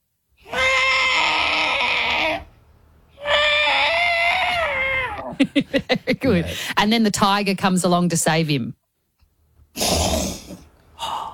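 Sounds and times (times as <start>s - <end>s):
human voice imitating an elephant in distress, wailing calls: 0.4s - 2.5s, 3.2s - 5.3s
speech: 5.4s - 8.8s.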